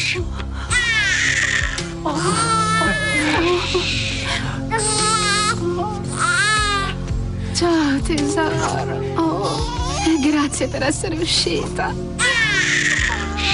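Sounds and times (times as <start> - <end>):
speech: 0.1 - 0.4, 7.6 - 12.2
newborn baby girl crying at her first checkup: 0.6 - 7.0, 9.4 - 11.2, 12.2 - 13.5.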